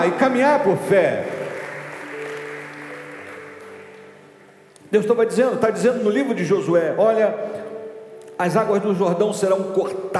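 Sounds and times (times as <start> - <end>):
speech: 0.0 - 1.4, 4.9 - 7.6, 8.4 - 10.1
audience applause: 0.0 - 4.5
sustained musical tones: 0.1 - 4.9.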